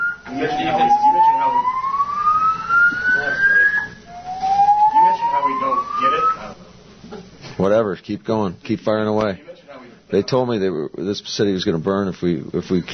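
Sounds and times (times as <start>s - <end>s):
fire alarm whooping: 0.0s - 6.6s
speech: 0.3s - 1.8s, 7.6s - 9.5s, 10.1s - 12.9s.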